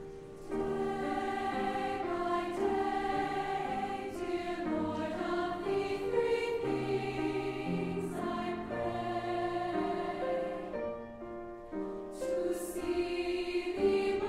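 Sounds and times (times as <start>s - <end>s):
choir singing: 0.5s - 14.2s.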